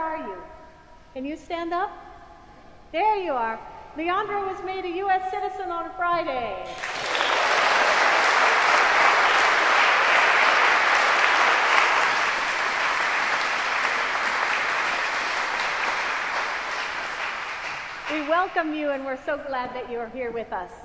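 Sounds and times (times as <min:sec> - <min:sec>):
speech: 0:01.2 - 0:02.0, 0:02.9 - 0:07.0, 0:18.3 - 0:20.8
audience applauding and cheering: 0:06.7 - 0:19.0.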